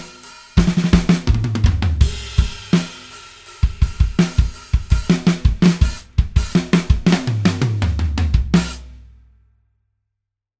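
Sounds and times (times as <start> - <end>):
big beat rock music: 0.0 - 7.7.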